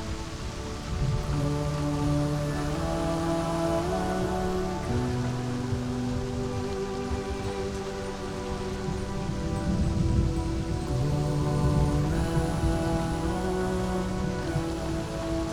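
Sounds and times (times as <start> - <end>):
rain: 0.0 - 15.5.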